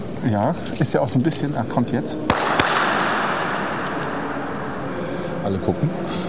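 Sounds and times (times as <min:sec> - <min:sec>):
speech: 0:00.2 - 0:02.8, 0:05.5 - 0:06.2
hand clap echoing in reverberant hall: 0:02.3 - 0:04.3.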